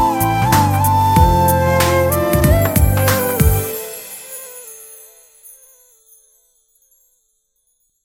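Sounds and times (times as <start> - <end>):
flute theme: 0.0 - 5.5.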